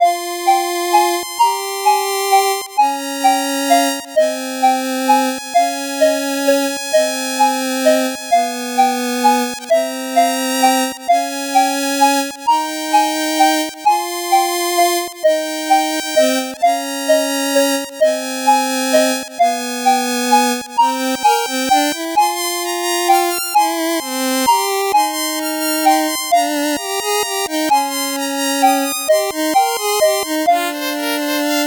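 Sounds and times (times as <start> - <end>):
8-bit background music: 0.0 - 31.6.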